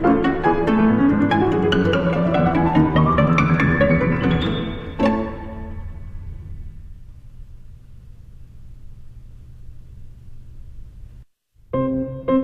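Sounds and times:
piano part of a violin sonata: 0.0 - 7.0, 11.7 - 12.4.

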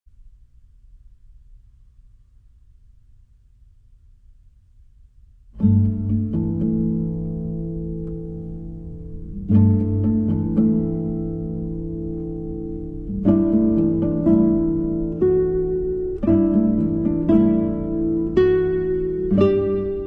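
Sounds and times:
guitar quartet playing: 5.6 - 20.0.

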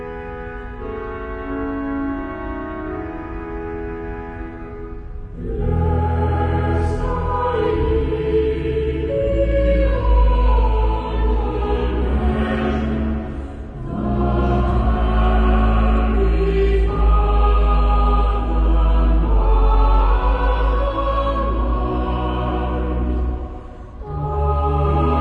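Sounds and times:
cathedral choir singing: 5.3 - 25.1.

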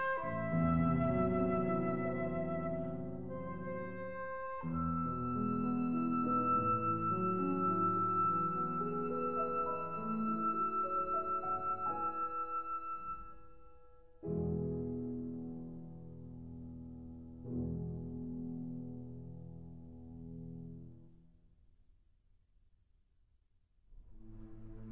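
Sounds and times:
flute and piano lullaby: 0.0 - 19.4.

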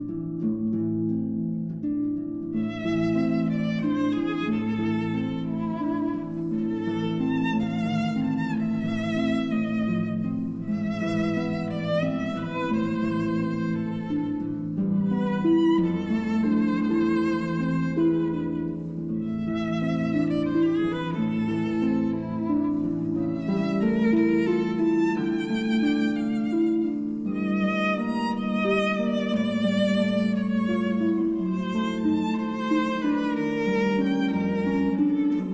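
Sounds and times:
berceuse for violin and harp: 0.0 - 35.5.

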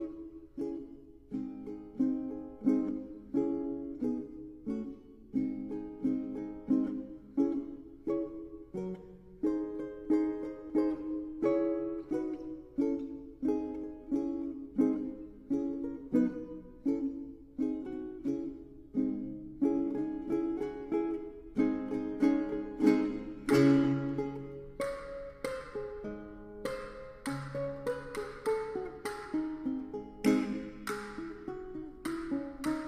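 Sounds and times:
guitar playing a fandango: 0.0 - 32.8
percussion playing a fandango: 22.8 - 26.0, 30.2 - 32.8.

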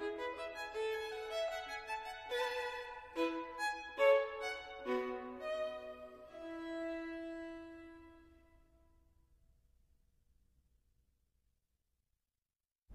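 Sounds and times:
violin: 0.0 - 8.7.

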